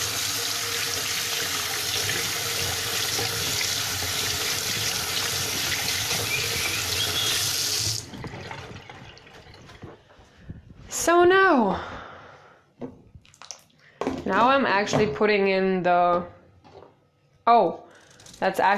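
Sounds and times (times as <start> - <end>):
water coming to a boil: 0.0 - 10.0
speech: 14.3 - 16.4, 17.5 - 17.8, 18.4 - 18.7.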